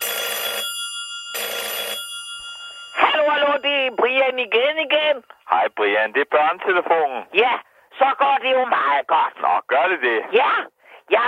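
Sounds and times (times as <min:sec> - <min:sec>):
telephone ringing: 0:00.0 - 0:07.0
speech: 0:03.3 - 0:11.2.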